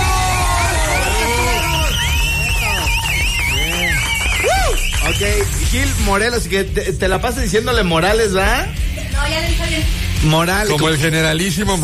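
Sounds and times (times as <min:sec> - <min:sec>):
audience applause and cheering: 0:00.0 - 0:06.2
speech: 0:05.7 - 0:11.8.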